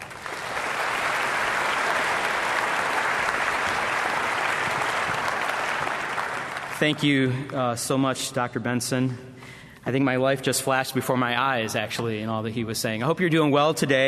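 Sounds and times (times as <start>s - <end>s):
audience applause welcoming a guest speaker at a morning worship gathering: 0.0s - 8.0s
speech: 6.8s - 14.0s.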